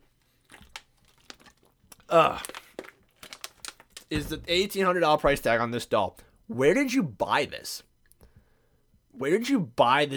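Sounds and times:
person sipping water: 0.5s - 3.1s
speech: 2.1s - 2.6s, 4.1s - 7.9s, 9.2s - 10.1s.

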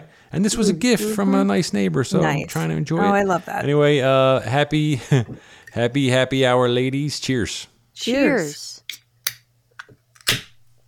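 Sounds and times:
speech: 0.3s - 8.8s
can popping open: 8.9s - 10.6s.

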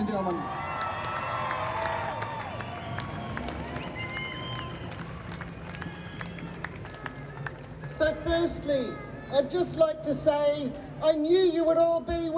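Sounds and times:
cheers and whoops: 0.0s - 7.5s
audience applause: 0.0s - 7.9s
speech: 0.1s - 0.7s, 8.2s - 12.3s.

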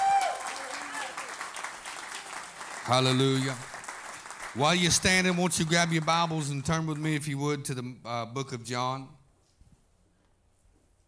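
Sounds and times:
audience hand clapping: 0.0s - 7.6s
speech: 2.9s - 3.7s, 4.5s - 9.2s.

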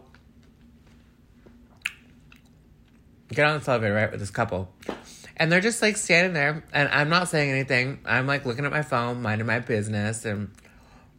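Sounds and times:
person chewing food: 1.7s - 3.2s
speech: 3.3s - 4.8s, 5.4s - 10.6s.

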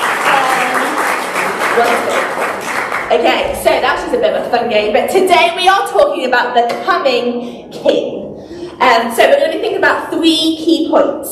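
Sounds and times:
audience applause: 0.0s - 3.4s
speech: 1.8s - 2.5s, 3.1s - 8.2s, 8.8s - 11.2s.

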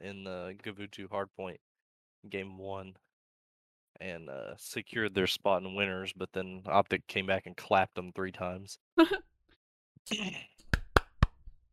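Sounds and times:
speech: 0.0s - 3.1s, 4.0s - 9.3s, 10.0s - 10.5s
sharp hand claps: 10.7s - 11.5s.

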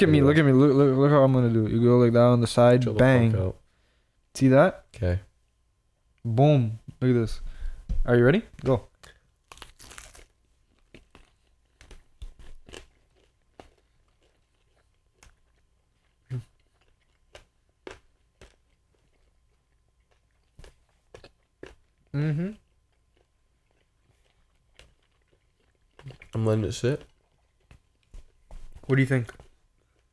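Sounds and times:
speech: 0.0s - 3.6s, 4.4s - 5.3s, 6.2s - 8.9s, 22.1s - 22.6s, 26.3s - 27.1s, 28.9s - 29.4s
chewing: 9.1s - 28.4s.

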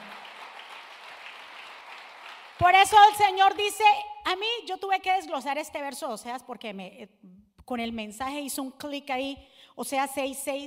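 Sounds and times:
audience applauding loudly: 0.0s - 2.8s
speech: 2.6s - 10.6s.

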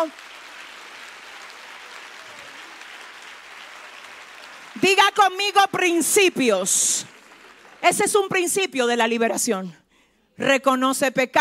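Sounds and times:
speech: 0.0s - 0.3s, 4.8s - 7.2s, 7.8s - 9.8s, 10.4s - 11.3s
audience applause: 0.0s - 8.3s.

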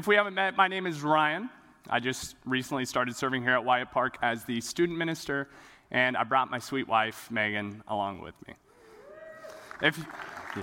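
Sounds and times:
speech: 0.0s - 8.6s, 9.8s - 10.6s
audience clapping: 9.4s - 10.6s.

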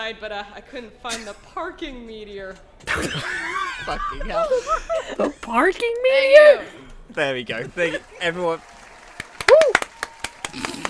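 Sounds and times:
speech: 0.0s - 8.7s
laughter: 2.9s - 5.6s, 7.5s - 8.8s
people cheering: 7.8s - 10.8s
people clapping: 7.8s - 10.8s.

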